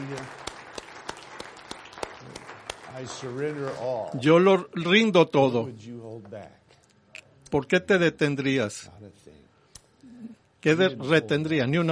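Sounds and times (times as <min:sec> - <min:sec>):
applause: 0:00.0 - 0:04.2
speech: 0:03.0 - 0:06.6, 0:07.5 - 0:09.4, 0:10.6 - 0:11.9.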